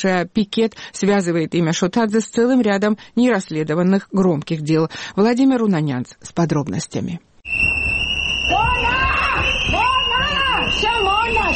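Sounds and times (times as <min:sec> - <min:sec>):
speech: 0:00.0 - 0:07.7
protest crowd whistling: 0:07.4 - 0:11.5
protest crowd shouting: 0:08.1 - 0:11.5.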